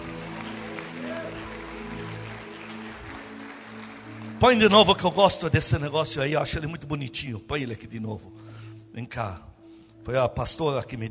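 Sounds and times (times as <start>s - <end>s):
audience clapping: 0.0s - 5.5s
speech: 4.4s - 11.0s.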